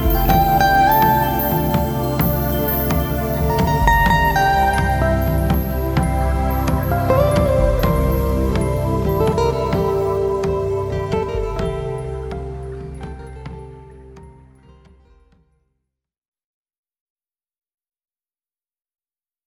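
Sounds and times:
instrumental reprise: 0:00.0 - 0:15.5.

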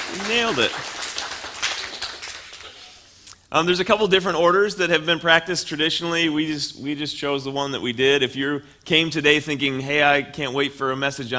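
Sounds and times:
audience clapping: 0:00.0 - 0:03.1
speech: 0:00.2 - 0:01.0, 0:03.5 - 0:11.3.

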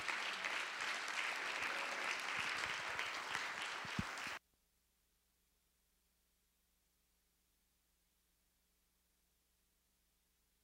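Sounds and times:
warm round of applause: 0:00.0 - 0:04.4.

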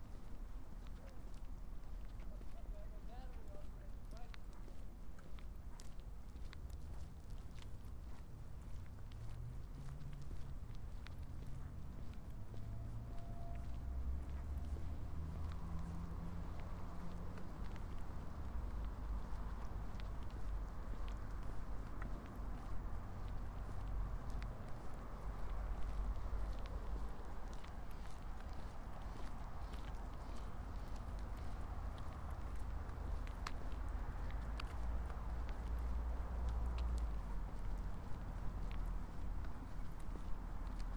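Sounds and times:
traffic rumble in Marpole: 0:00.0 - 0:40.9.

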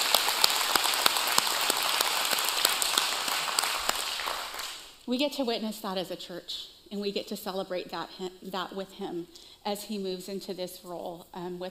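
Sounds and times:
church audience applauding: 0:00.0 - 0:05.0
speech: 0:05.1 - 0:11.6.

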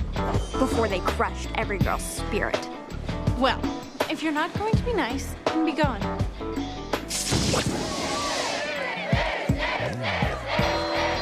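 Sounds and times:
speech: 0:00.6 - 0:02.8, 0:03.4 - 0:08.2
sharp crashing hits: 0:07.1 - 0:08.6
crowd cheering and yelling in a Disney Channel movie scene: 0:07.7 - 0:11.2.

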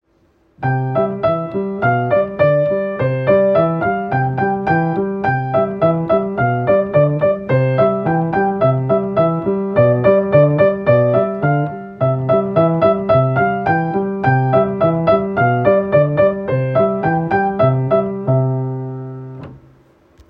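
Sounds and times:
piano melody: 0:00.6 - 0:19.9.

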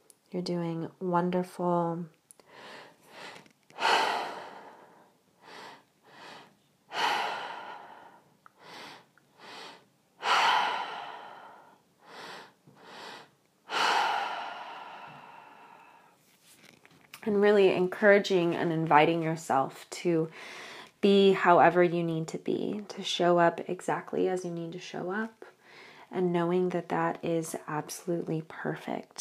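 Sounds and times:
speech: 0:00.3 - 0:02.2, 0:17.4 - 0:25.5, 0:26.1 - 0:29.2
deep breathing into belly and chest, out through the mouth: 0:02.4 - 0:16.2.

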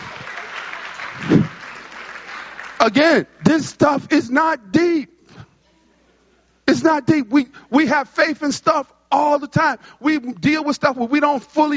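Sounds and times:
audience applause: 0:00.0 - 0:03.4
speech: 0:02.8 - 0:05.1, 0:06.8 - 0:11.7.

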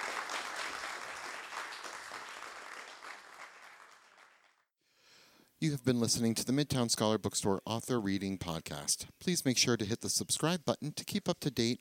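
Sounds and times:
audience round of applause: 0:00.0 - 0:04.6
speech: 0:05.6 - 0:11.7.

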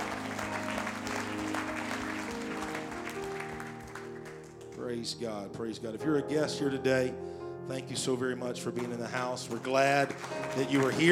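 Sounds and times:
audience clapping hands: 0:00.0 - 0:05.1, 0:08.6 - 0:11.0
speech: 0:04.9 - 0:11.0.

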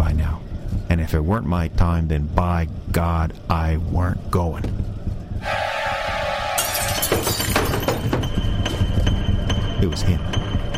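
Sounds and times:
steady low rumble: 0:00.0 - 0:10.7
speech: 0:00.9 - 0:04.8, 0:09.8 - 0:10.4
brief sustained tone: 0:05.4 - 0:10.7
window glass shattering: 0:06.6 - 0:08.3.

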